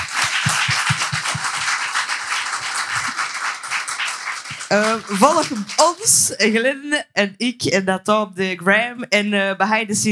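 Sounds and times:
audience applause: 0:00.0 - 0:06.1
speech: 0:04.7 - 0:10.0.

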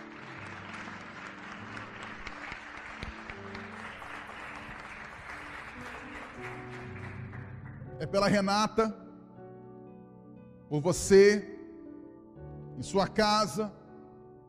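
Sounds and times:
audience applause: 0:00.0 - 0:07.9
speech: 0:08.0 - 0:09.0, 0:10.7 - 0:11.5, 0:12.8 - 0:13.8.

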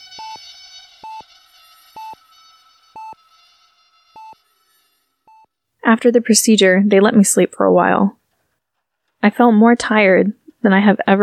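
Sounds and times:
heart monitor beeping: 0:00.0 - 0:01.3, 0:02.0 - 0:02.2, 0:03.0 - 0:03.2, 0:04.2 - 0:04.4, 0:05.3 - 0:05.5
speech: 0:05.9 - 0:08.2, 0:09.2 - 0:11.2.

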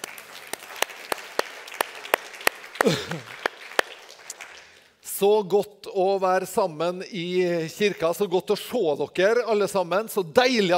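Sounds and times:
warm applause from audience: 0:00.0 - 0:04.9
speech: 0:02.8 - 0:03.4, 0:05.2 - 0:10.7.

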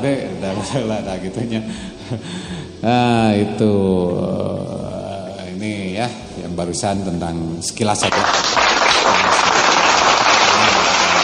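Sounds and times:
speech: 0:00.0 - 0:04.8, 0:05.6 - 0:08.7
applause: 0:08.0 - 0:11.2.

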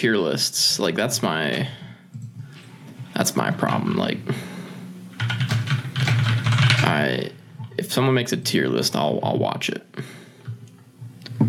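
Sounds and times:
speech: 0:00.0 - 0:01.8, 0:03.2 - 0:04.5, 0:06.9 - 0:10.2
rapid typing on a computer keyboard: 0:05.2 - 0:06.9.

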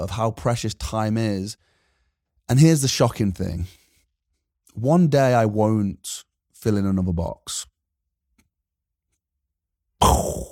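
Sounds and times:
speech: 0:00.0 - 0:01.7, 0:02.5 - 0:03.8, 0:04.8 - 0:07.7
voice imitating a brain explosion: 0:10.0 - 0:10.5.

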